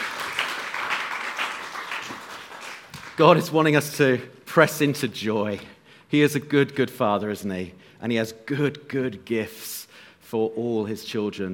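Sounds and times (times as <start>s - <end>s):
audience applause: 0.0s - 3.2s
speech: 3.2s - 11.5s.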